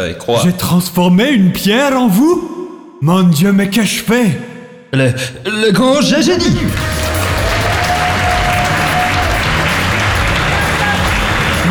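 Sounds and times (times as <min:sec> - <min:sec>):
speech: 0:00.0 - 0:07.1
applause: 0:06.7 - 0:11.6.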